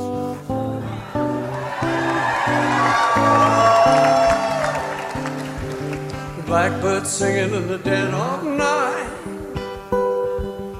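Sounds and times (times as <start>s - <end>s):
strummed acoustic guitar chords: 0.0s - 10.7s
crowd cheering and whooping at impromptu station concert: 0.8s - 6.4s
speech: 6.6s - 8.7s.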